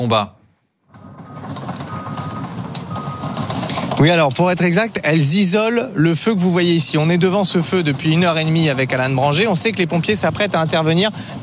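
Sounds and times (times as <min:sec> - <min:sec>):
speech: 0:00.0 - 0:00.4, 0:04.0 - 0:11.4
heavy machinery rumbling and clanking: 0:00.8 - 0:11.4
excavator reversing beeps: 0:01.2 - 0:03.7.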